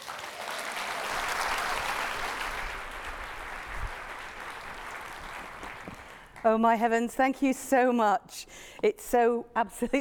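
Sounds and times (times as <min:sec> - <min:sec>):
audience applause welcoming a professor at a 2023 NSWNMA conference: 0:00.0 - 0:06.4
speech: 0:06.4 - 0:09.9.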